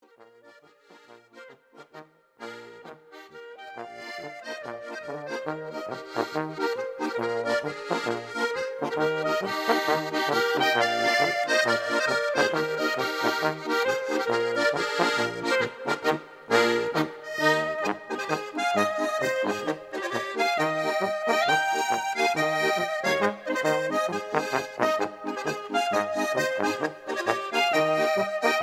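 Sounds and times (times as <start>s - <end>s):
polka music: 0.1s - 28.6s.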